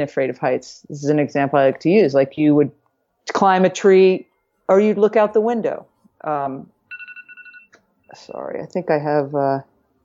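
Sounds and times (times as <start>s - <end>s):
speech: 0.0s - 6.8s, 8.1s - 9.7s
short high electronic beeps: 6.9s - 8.3s.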